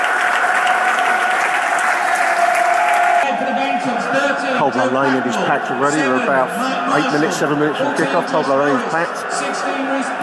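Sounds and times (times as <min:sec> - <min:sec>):
large stadium crowd applauding: 0:00.0 - 0:10.2
laughter: 0:02.0 - 0:10.2
speech: 0:04.7 - 0:10.2.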